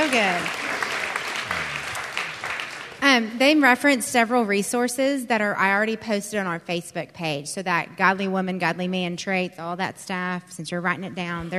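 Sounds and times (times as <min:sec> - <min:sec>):
speech: 0:00.0 - 0:00.8, 0:03.2 - 0:11.5
round of applause: 0:00.0 - 0:03.0
faint low voice murmuring: 0:01.4 - 0:02.1.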